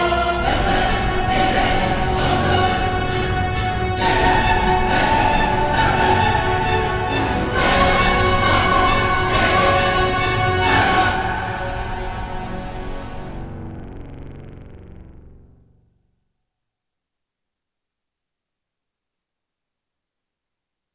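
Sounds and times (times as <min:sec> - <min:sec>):
orchestra: 0:00.0 - 0:13.3
choir: 0:00.0 - 0:13.4.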